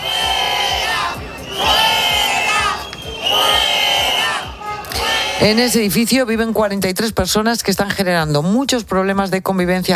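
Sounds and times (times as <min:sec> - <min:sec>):
neighbourhood protesters shouting in unison: 0:00.0 - 0:05.8
speech: 0:05.4 - 0:09.9.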